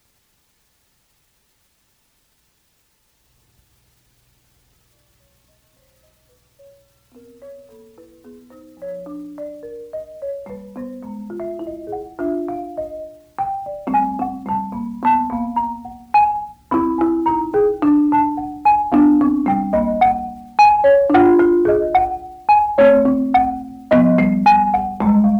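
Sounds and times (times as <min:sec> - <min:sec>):
marimba interlude: 0:06.6 - 0:25.3.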